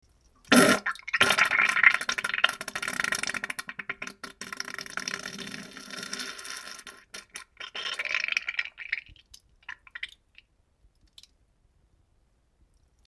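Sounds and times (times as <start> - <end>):
diarrhea fart: 0.5 - 8.4.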